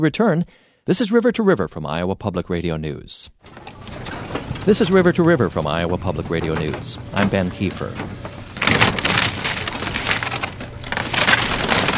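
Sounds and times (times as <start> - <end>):
speech: 0.0 - 4.0, 4.7 - 8.2
track hoe clearing tornado debris: 3.4 - 11.9
wood crunching and splintering: 3.4 - 11.9.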